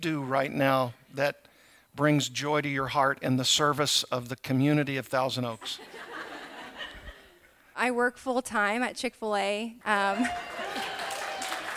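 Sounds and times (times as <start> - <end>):
speech: 0.0 - 6.0, 7.8 - 10.6
laughter: 5.6 - 7.5, 10.2 - 11.7
audience applause: 10.2 - 11.7.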